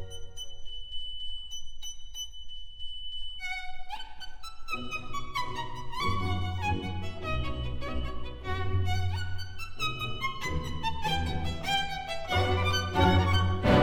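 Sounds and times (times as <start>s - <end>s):
violin concerto in B minor: 3.4s - 13.8s.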